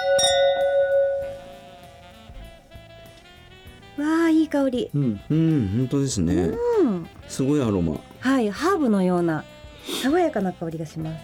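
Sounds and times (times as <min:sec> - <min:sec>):
wine glasses clinking in a toast: 0:00.0 - 0:02.2
speech: 0:04.0 - 0:11.2.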